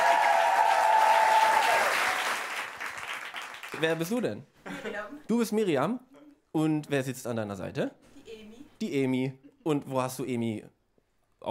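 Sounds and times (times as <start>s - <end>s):
comedy show audience applause: 0.0s - 4.1s
speech: 3.8s - 8.1s, 8.8s - 10.8s.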